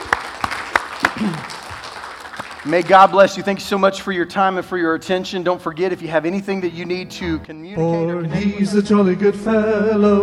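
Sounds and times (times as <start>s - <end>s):
audience applause: 0.0s - 3.4s
speech: 2.6s - 10.2s.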